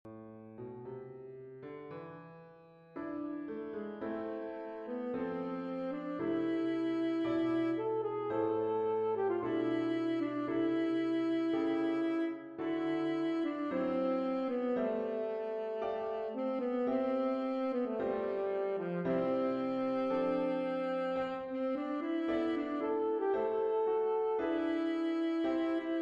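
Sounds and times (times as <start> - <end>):
saxophone vocalise etude: 3.4 - 26.0.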